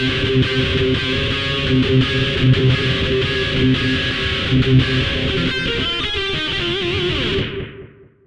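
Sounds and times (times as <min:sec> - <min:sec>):
guitar lick: 0:00.0 - 0:08.1.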